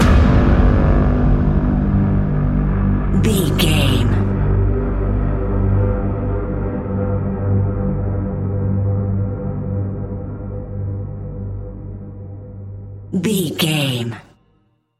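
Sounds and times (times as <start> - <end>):
suspenseful mystery music: 0.0 - 13.1.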